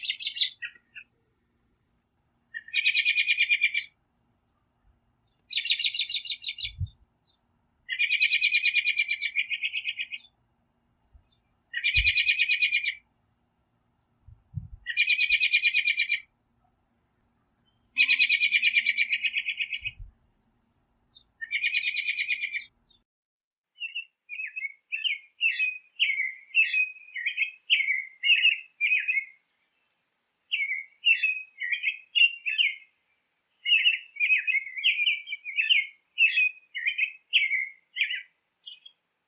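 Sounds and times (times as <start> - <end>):
American robin: 0.0 - 10.4, 11.2 - 13.1, 13.9 - 16.4, 17.3 - 20.1, 21.1 - 23.0, 23.8 - 39.1.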